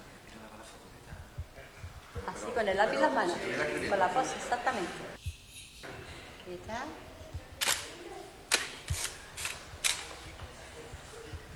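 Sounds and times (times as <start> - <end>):
faint murmur of voices: 0.0 - 11.5
speech: 2.4 - 5.2, 6.5 - 7.1
camera shutter clicks: 7.6 - 7.9, 8.5 - 10.2.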